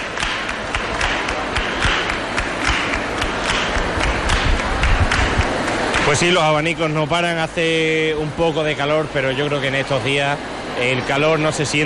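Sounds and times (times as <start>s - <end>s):
rhythmic hand clapping by group: 0.0s - 6.4s
speech: 6.1s - 11.8s.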